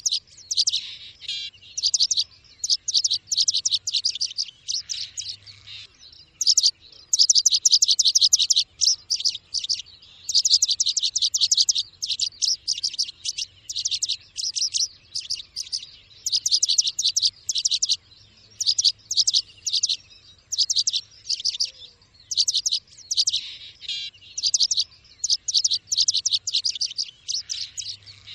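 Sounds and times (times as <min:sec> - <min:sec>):
bird chirping: 0:00.0 - 0:28.3.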